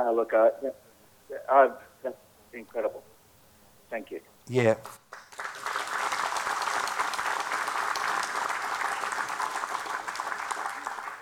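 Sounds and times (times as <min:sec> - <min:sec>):
speech: 0:00.0 - 0:03.1, 0:03.9 - 0:05.1
audience clapping: 0:04.6 - 0:11.1.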